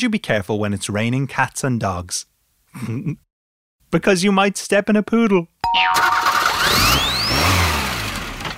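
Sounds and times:
speech: 0:00.0 - 0:03.3, 0:03.9 - 0:07.1
truck engine revving: 0:06.2 - 0:08.5.

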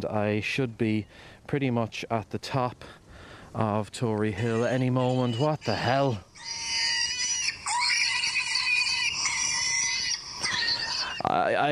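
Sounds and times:
speech: 0:00.0 - 0:06.7, 0:11.2 - 0:11.7
startled wild boar piglet squealing on an Irish hilltop: 0:04.4 - 0:11.3.

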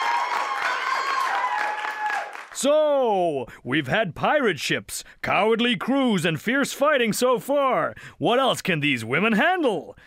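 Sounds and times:
audience applause: 0:00.0 - 0:02.6
speech: 0:02.6 - 0:10.0.

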